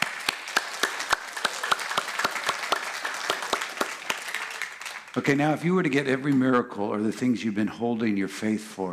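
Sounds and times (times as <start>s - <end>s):
crowd applause: 0.0s - 5.5s
speech: 5.2s - 8.9s.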